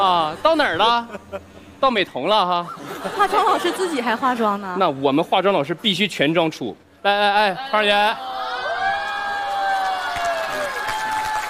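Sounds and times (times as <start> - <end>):
speech: 0.0 - 8.3
laughter: 2.6 - 4.7
crowd cheering and shouting: 7.6 - 11.4
high whoops and excited calls: 8.0 - 11.4
scattered clapping: 9.7 - 11.4.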